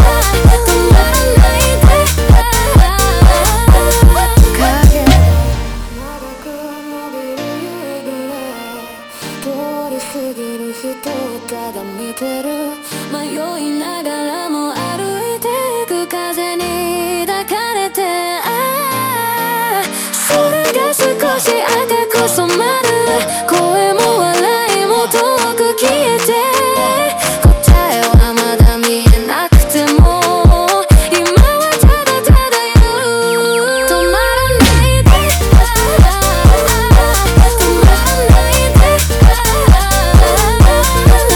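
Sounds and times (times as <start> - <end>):
montagem funk music: 0.0 - 7.1, 19.6 - 33.2, 33.8 - 41.3.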